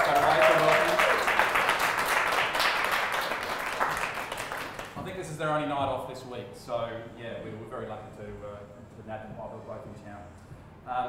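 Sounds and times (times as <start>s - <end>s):
audience applause: 0.0s - 5.0s
speech: 5.5s - 11.0s.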